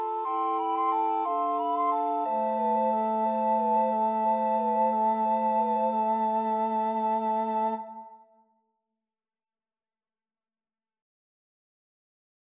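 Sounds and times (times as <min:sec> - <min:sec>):
recorder quartet playing a Christmas carol: 0:00.0 - 0:07.8.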